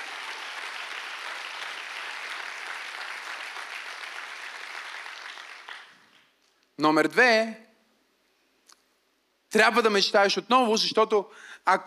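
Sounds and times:
audience applauding: 0.0 - 6.4
speech: 6.8 - 7.6, 9.5 - 11.8.

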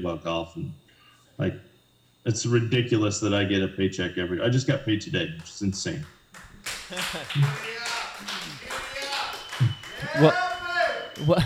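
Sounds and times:
speech: 0.0 - 0.8, 1.4 - 8.5, 9.6 - 10.5, 11.2 - 11.4
people clapping in the room: 5.4 - 11.4
laughter: 6.4 - 11.4.

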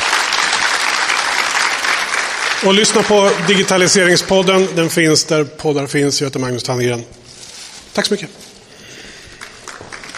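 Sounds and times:
audience applause for a panel: 0.0 - 4.9, 9.2 - 10.1
speech: 2.6 - 7.2, 8.0 - 8.5.

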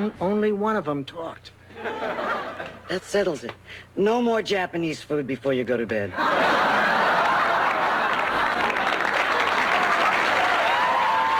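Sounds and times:
speech: 0.0 - 7.0
laughter: 1.7 - 3.0, 6.1 - 10.7
audience applauding wildly: 6.8 - 11.3.

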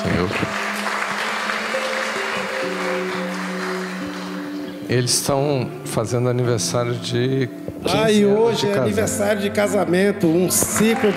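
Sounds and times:
speech: 0.0 - 0.6, 4.9 - 11.1
round of applause: 0.0 - 4.8, 10.5 - 11.1.

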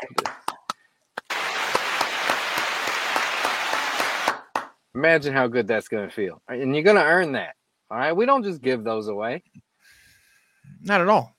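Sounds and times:
clapping: 0.0 - 4.8
speech: 5.0 - 9.6, 10.7 - 11.3.

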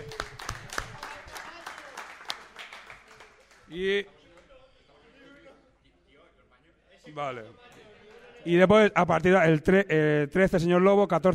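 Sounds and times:
scattered round of hand claps: 0.0 - 3.7
speech: 3.7 - 4.2, 7.2 - 7.7, 8.4 - 11.3.

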